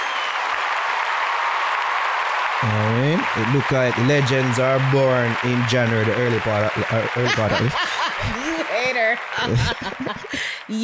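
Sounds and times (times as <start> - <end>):
stadium applause from a big crowd: 0.0 - 10.8
speech: 2.6 - 8.4, 9.1 - 10.8
laughter: 2.6 - 10.6.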